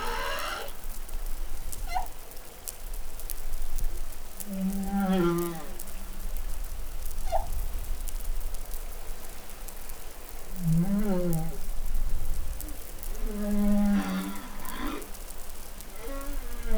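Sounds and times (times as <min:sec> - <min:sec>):
humpback whale song: 0:00.0 - 0:00.8, 0:01.9 - 0:02.2, 0:04.5 - 0:05.9, 0:10.6 - 0:11.8, 0:12.6 - 0:16.7
crackling sea noise: 0:00.0 - 0:16.7.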